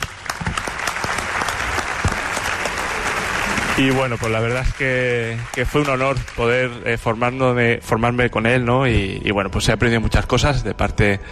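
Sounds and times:
room full of people clapping: 0.0 - 7.0
speech: 3.8 - 11.3.

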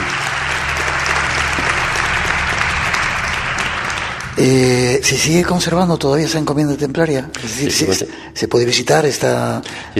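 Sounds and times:
audience applause: 0.0 - 5.9
speech: 4.4 - 9.9.

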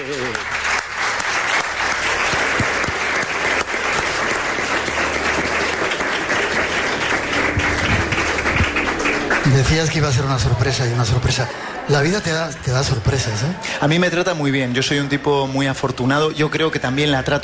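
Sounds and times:
speech: 0.0 - 0.7, 9.6 - 17.4
audience applause: 0.0 - 12.4.

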